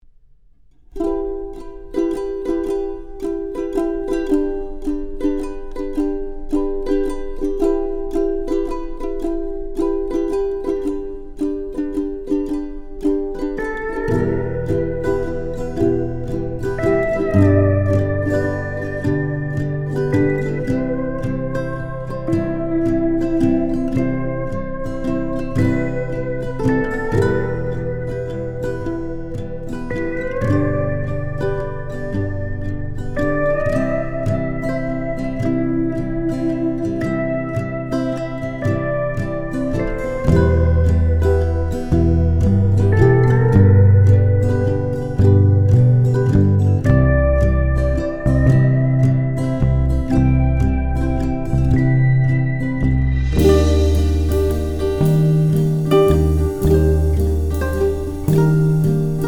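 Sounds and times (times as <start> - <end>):
emotional Hawaii minimal instrumental music: 0.9 - 59.2.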